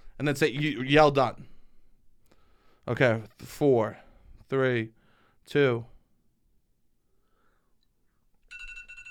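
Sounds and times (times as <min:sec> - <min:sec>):
speech: 0:00.2 - 0:01.5, 0:02.9 - 0:05.9
radar alarm ringtone: 0:08.5 - 0:09.1.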